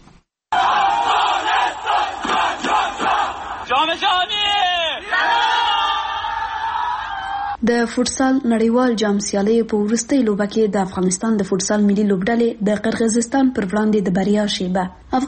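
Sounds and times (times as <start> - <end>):
crowds shouting and cheering welcoming the Afghanistan national futsal team: 0.5 - 7.6
speech: 7.7 - 15.2.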